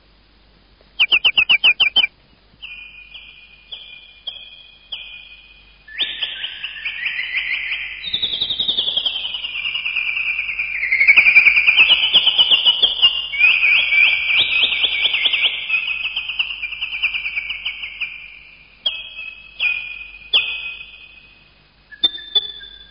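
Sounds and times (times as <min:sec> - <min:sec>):
birds twittering with overlapping high chirps: 0:01.0 - 0:22.8.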